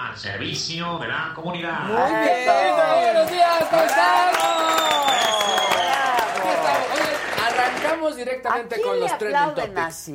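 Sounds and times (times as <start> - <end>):
speech: 0.2 - 5.8, 6.5 - 10.1
audience applauding: 2.5 - 8.3.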